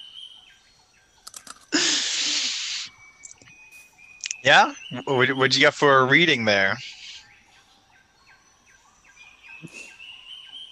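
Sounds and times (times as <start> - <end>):
reptile screaming: 1.8 - 2.9
speech: 4.4 - 7.0.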